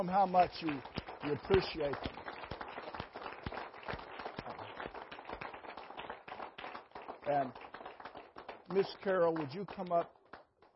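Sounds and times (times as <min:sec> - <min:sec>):
speech: 0:00.0 - 0:02.2, 0:07.3 - 0:07.6, 0:08.7 - 0:10.2
audience applause: 0:00.0 - 0:10.7.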